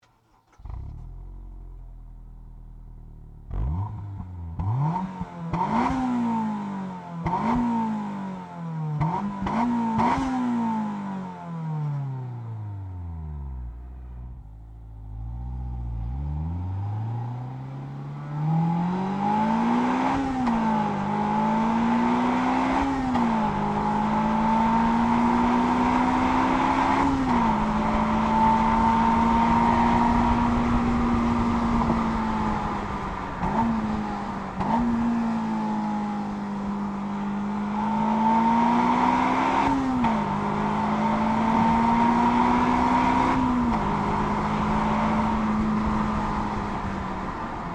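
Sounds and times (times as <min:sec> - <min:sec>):
Honda S2000 car engine: 0:00.0 - 0:47.7.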